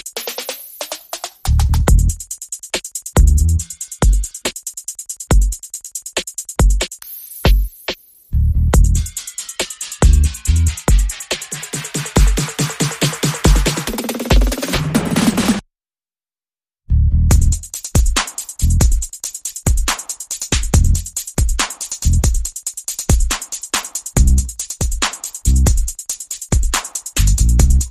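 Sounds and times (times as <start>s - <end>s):
percussion: 0.0s - 15.6s, 17.3s - 27.8s
bass: 1.4s - 2.2s, 3.2s - 3.7s, 8.3s - 9.2s, 10.0s - 11.0s, 16.9s - 17.8s, 18.6s - 19.0s, 20.6s - 21.2s, 22.0s - 22.3s, 24.2s - 24.6s, 25.5s - 25.8s, 27.2s - 27.8s.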